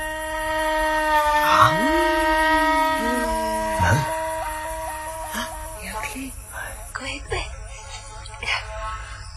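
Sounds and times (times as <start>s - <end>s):
eerie whistling: 0.0s - 6.3s.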